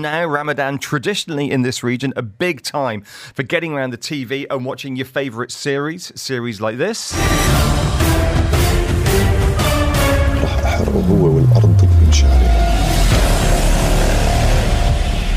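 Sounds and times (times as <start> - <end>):
speech: 0.0 - 8.3, 10.6 - 13.7
sharp hits in StarzPlay trailer audio: 7.1 - 15.3
low rumble in trailer audio: 10.0 - 15.3
deep tone sliding downward in trailer audio: 10.4 - 13.6.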